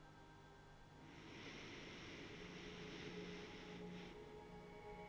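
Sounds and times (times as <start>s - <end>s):
noisy breathing: 1.0s - 4.9s.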